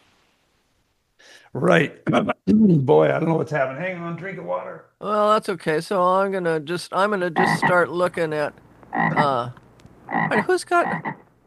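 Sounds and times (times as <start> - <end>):
speech: 1.5 - 11.2
frog croaking: 7.3 - 7.9, 8.9 - 11.3.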